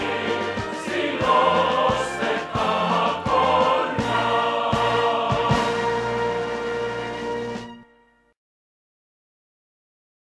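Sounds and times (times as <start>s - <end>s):
hymn: 0.0s - 6.9s.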